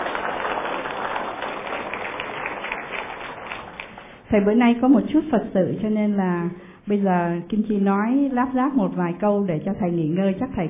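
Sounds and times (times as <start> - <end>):
audience applause: 0.0 - 4.2
speech: 4.3 - 10.6.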